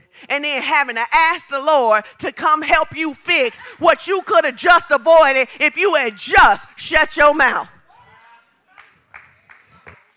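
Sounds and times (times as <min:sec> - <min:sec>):
speech: 0:00.3 - 0:07.8
scattered hand claps from an audience: 0:08.8 - 0:10.1.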